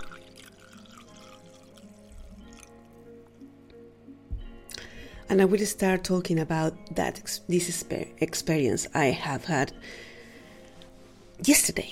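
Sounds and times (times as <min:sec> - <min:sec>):
coffee pouring into a cup at a public cupping at Crank House Coffee: 0:00.0 - 0:03.1
speech: 0:05.3 - 0:10.1, 0:11.4 - 0:11.8.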